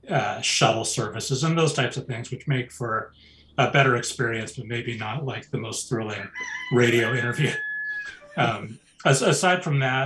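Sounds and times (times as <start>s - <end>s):
speech: 0.0s - 10.0s
rooster crowing: 6.1s - 8.7s.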